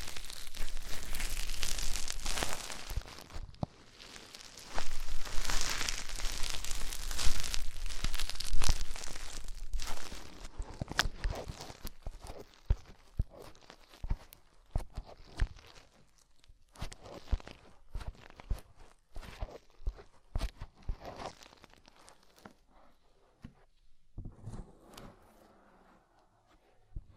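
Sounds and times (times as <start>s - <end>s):
deep ear cleaning scratching and rubbing: 0.0s - 15.6s
sharp clicks and crinkles: 0.0s - 22.6s.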